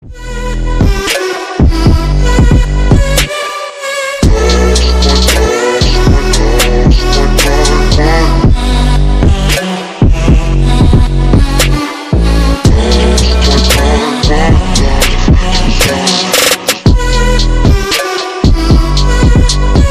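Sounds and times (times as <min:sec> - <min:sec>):
trap remix: 0:00.0 - 0:19.8.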